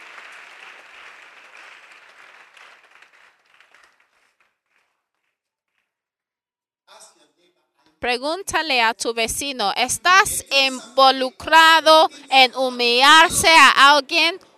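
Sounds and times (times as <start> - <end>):
audience applauding: 0.0 - 5.3
speech: 8.0 - 14.4.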